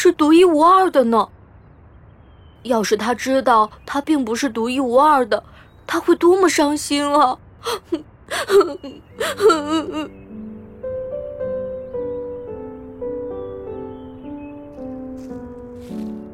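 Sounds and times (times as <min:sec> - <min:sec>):
speech: 0:00.0 - 0:01.4, 0:02.6 - 0:10.2
little prince crying: 0:07.6 - 0:10.1.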